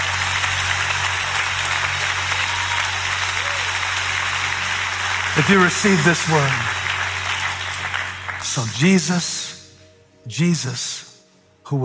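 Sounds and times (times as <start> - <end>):
audience clapping hands: 0.0 - 9.3
speech: 5.4 - 6.8, 8.5 - 9.4, 10.3 - 11.1.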